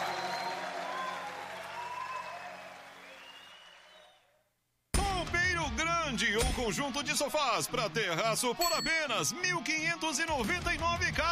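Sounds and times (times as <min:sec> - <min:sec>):
audience applauding: 0:00.0 - 0:04.3
speech: 0:05.6 - 0:11.3.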